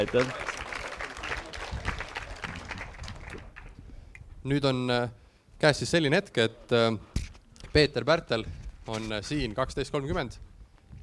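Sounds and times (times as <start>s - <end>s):
speech: 0.0s - 0.4s, 4.4s - 7.1s, 7.7s - 10.5s
audience applause: 0.0s - 3.8s.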